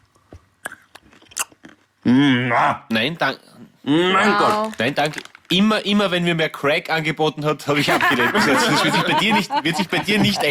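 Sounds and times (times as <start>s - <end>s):
crunching on a cinnamon almond: 0.6s - 2.0s
speech: 2.0s - 10.4s
laughter: 7.7s - 10.4s.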